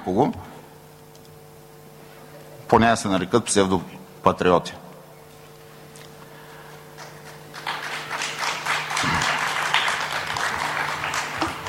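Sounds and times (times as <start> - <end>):
speech: 0.0 - 0.5, 2.7 - 4.8
crowd applause: 7.0 - 11.6.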